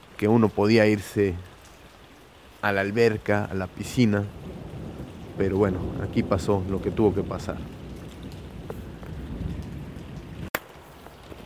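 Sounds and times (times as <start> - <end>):
heavy rain downpour on a street: 0.0 - 11.4
speech: 0.2 - 1.5, 2.6 - 4.4, 5.4 - 7.8
sharp crack of thunder: 3.8 - 11.4.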